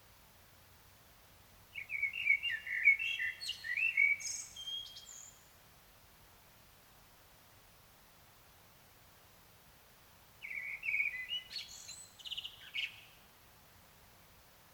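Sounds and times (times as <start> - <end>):
Common blackbird song: 1.7 - 5.5, 10.4 - 13.2.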